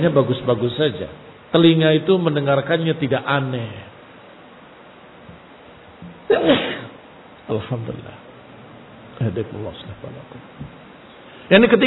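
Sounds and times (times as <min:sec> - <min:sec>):
speech: 0:00.0 - 0:03.9, 0:06.3 - 0:06.7, 0:07.5 - 0:08.2, 0:09.2 - 0:10.8, 0:11.5 - 0:11.8
person sneezing: 0:06.3 - 0:07.0.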